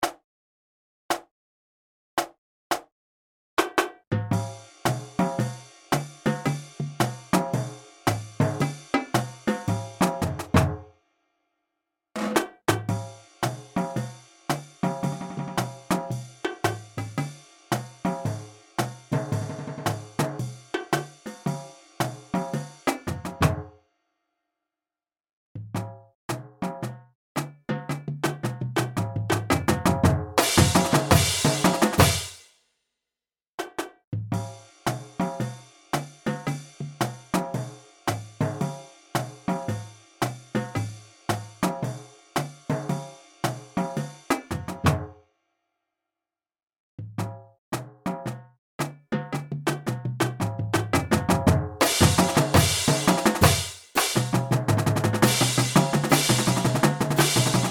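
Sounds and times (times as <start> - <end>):
percussion: 0.0 - 0.2, 1.1 - 1.3, 2.2 - 2.9, 3.6 - 10.8, 12.2 - 23.6, 25.6 - 32.5, 33.6 - 45.0, 47.1 - 57.7.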